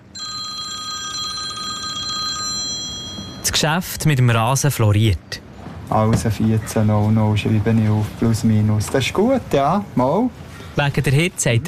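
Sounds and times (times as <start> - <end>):
telephone bell ringing: 0.0 - 3.5
speech: 3.6 - 11.6.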